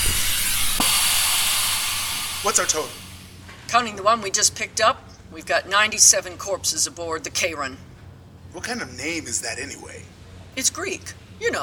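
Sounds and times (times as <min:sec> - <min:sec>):
airlock pressurizing hiss: 0:00.0 - 0:03.4
speech: 0:02.4 - 0:03.0, 0:03.7 - 0:07.9, 0:08.5 - 0:11.6.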